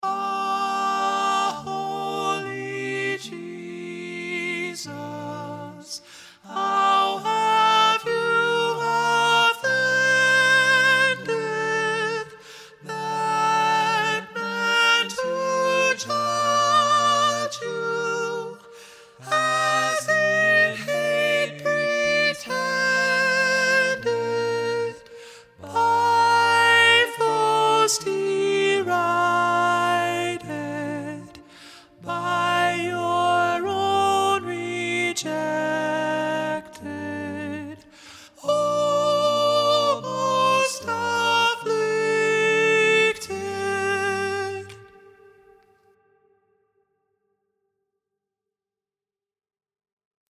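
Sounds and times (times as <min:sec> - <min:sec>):
prominent soprano voice singing: 0:00.0 - 0:46.0.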